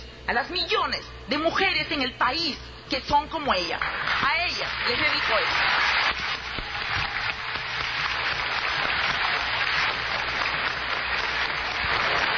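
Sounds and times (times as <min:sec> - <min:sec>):
speech: 0:00.3 - 0:05.9
crowd audience applause: 0:03.8 - 0:12.3.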